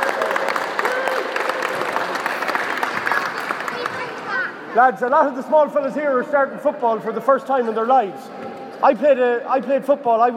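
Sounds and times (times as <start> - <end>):
crowd clapping for children: 0.0 - 4.6
speech: 4.8 - 10.3.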